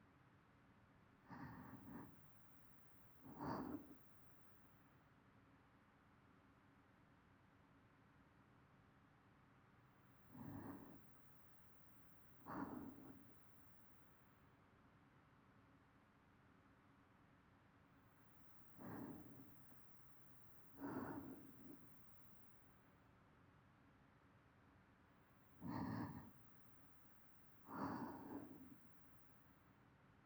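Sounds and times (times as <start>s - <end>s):
person breathing in sleep loop: 1.3s - 2.2s, 3.2s - 4.0s, 10.4s - 11.0s, 12.5s - 13.4s, 18.7s - 19.8s, 20.7s - 22.2s, 25.6s - 26.4s, 27.6s - 28.9s.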